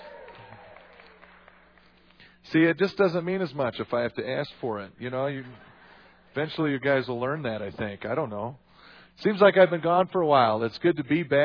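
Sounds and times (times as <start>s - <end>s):
audience applause and cheering: 0.0s - 2.1s
speech: 2.5s - 5.7s, 6.4s - 8.6s, 9.2s - 11.4s.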